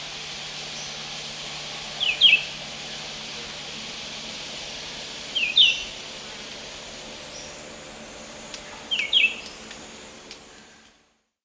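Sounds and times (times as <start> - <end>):
Vireo olivaceus song: 2.0 - 2.6, 5.3 - 6.0, 7.3 - 7.7, 8.6 - 9.6.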